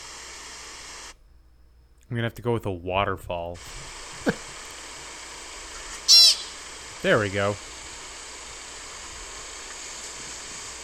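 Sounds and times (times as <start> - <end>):
background hiss: 0.0 - 10.8
speech: 2.1 - 4.5, 7.0 - 7.8
American pika squeak: 6.1 - 6.6.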